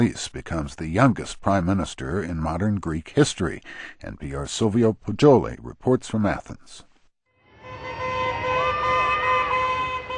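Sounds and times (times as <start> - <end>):
speech: 0.0 - 6.9
car horns honking at Greek election night celebrations in Athens: 7.5 - 10.1.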